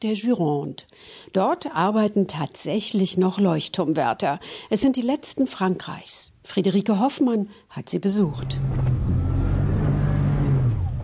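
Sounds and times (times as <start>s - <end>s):
speech: 0.0s - 9.0s
small transport boat engine droning in rough sea: 8.4s - 11.0s.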